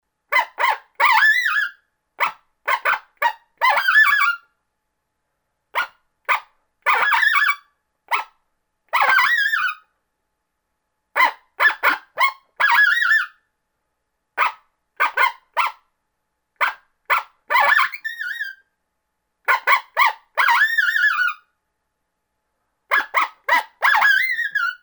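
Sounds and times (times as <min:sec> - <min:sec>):
coyote challenge barks and yowls: 0:00.3 - 0:04.4, 0:05.8 - 0:08.3, 0:08.9 - 0:09.8, 0:11.2 - 0:13.4, 0:14.4 - 0:15.8, 0:16.6 - 0:18.6, 0:19.5 - 0:21.5, 0:22.9 - 0:24.8.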